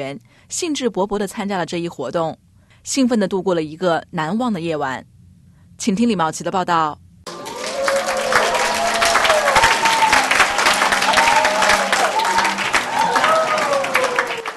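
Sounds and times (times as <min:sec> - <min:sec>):
speech: 0:00.0 - 0:05.1, 0:05.8 - 0:07.0
audience applause at a performance: 0:07.3 - 0:14.5.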